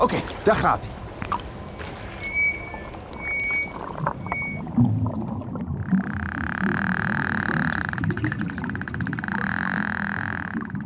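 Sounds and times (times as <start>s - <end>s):
speech: 0.0s - 1.0s
low rumbling underwater background: 0.0s - 10.8s
beluga whale whistles underwater: 2.0s - 4.8s.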